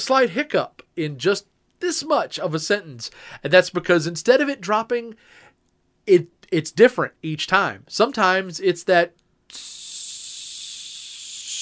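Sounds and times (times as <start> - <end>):
speech: 0.0 - 5.5, 6.1 - 9.8
pneumatic office chair hissing as it sinks: 9.5 - 11.6.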